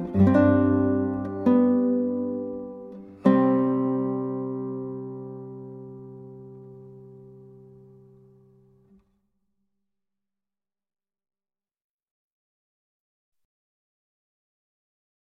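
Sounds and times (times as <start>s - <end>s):
8 string guitar playing: 0.0s - 9.0s.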